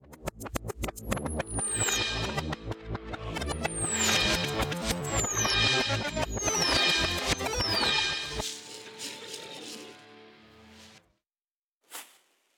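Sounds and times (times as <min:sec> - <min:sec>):
time machine animation sound effect: 0:00.1 - 0:08.6.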